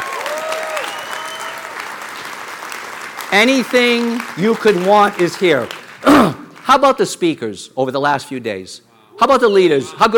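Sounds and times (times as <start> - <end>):
audience applause: 0.0 - 6.6
speech: 3.3 - 10.1.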